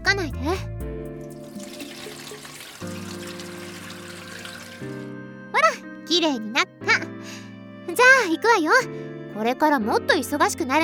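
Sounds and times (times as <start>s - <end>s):
speech: 0.1s - 0.8s, 6.1s - 10.8s
hands washed under running tap water: 1.2s - 5.1s.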